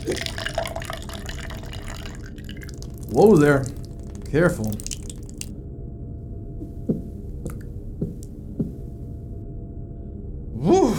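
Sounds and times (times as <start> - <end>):
speech: 0.0 - 0.4, 3.1 - 4.9
drink being poured into a glass: 0.0 - 5.5.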